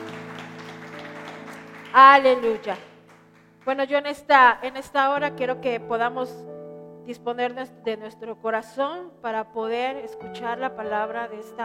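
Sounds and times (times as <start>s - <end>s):
audience applause: 0.0s - 3.6s
speech: 2.0s - 2.9s, 3.6s - 6.5s, 7.1s - 11.6s.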